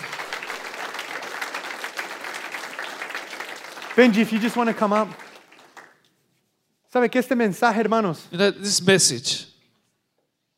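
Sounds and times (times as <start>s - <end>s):
audience applause: 0.0s - 6.0s
speech: 4.0s - 5.2s, 6.9s - 9.5s.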